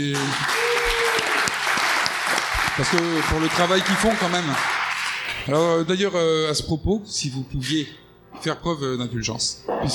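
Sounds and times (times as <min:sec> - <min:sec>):
speech: 0:00.0 - 0:00.7, 0:02.8 - 0:04.8, 0:05.4 - 0:09.9
crowd applause: 0:00.0 - 0:05.5.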